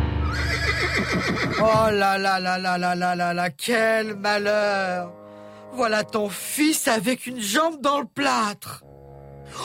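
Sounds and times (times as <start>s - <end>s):
horse neighing as it thrashes about: 0.2s - 1.8s
speech: 1.0s - 8.9s.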